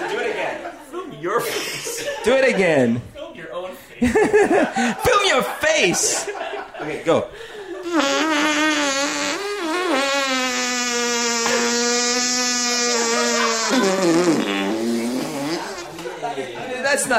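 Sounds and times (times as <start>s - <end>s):
laughter: 0.0s - 3.0s, 4.0s - 8.2s, 12.7s - 16.8s
speech: 1.2s - 3.1s, 4.0s - 8.1s, 16.9s - 17.1s
voice imitating a long buzzy fart: 7.8s - 16.0s.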